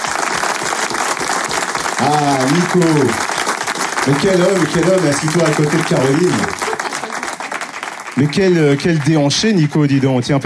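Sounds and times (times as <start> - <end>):
audience applause: 0.0 - 10.3
speech: 2.0 - 3.3, 4.0 - 6.6, 8.2 - 10.4.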